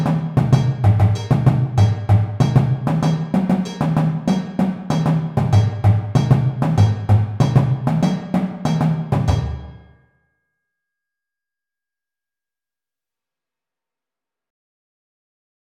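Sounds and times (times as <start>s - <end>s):
basses playing at 96 bpm: 0.0s - 9.8s.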